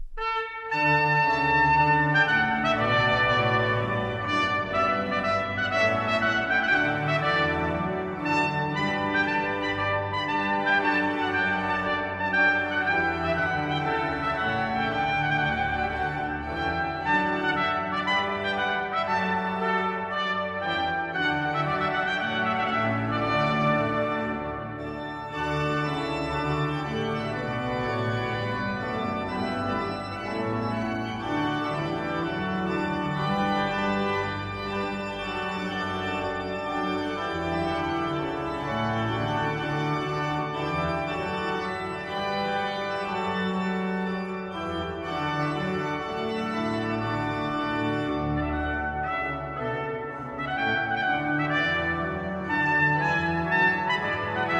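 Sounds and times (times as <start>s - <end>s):
trumpet piece: 0.0s - 54.5s.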